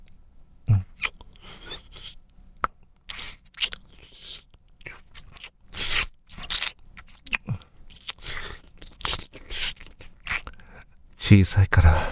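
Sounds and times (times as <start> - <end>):
wet licking mouth sounds: 0.9 - 10.5
speech: 11.3 - 12.1.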